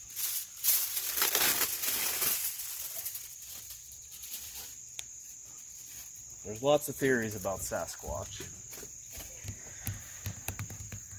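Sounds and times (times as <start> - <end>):
aluminium foil being ripped: 0.0 - 4.8
quiet foil rustles: 0.1 - 11.1
speech: 6.5 - 8.7.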